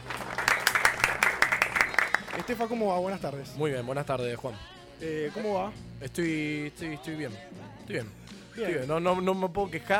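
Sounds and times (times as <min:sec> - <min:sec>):
applause: 0:00.0 - 0:02.7
speech: 0:02.4 - 0:09.9.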